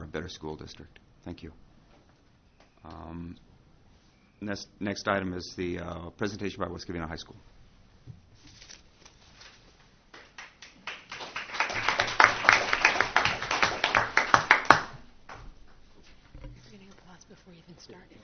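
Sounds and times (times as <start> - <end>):
speech: 0.2 - 1.7, 2.8 - 3.5, 4.4 - 7.5
audience applause: 10.1 - 15.1.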